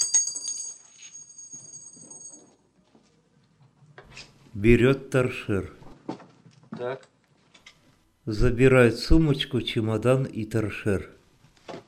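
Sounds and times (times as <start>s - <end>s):
keys thrown onto a tabletop clattering: 0.0s - 2.8s
speech: 4.6s - 5.8s, 6.8s - 7.1s, 8.3s - 11.2s.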